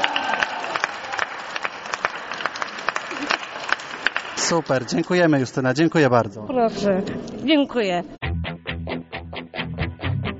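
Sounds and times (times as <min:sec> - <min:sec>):
audience applause: 0:00.0 - 0:05.8
speech: 0:04.5 - 0:08.2.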